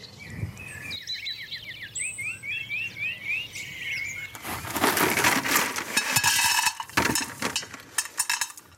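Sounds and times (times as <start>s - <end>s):
birds singing outdoors: 0.0s - 4.8s
crunching scraping noises: 4.2s - 8.7s.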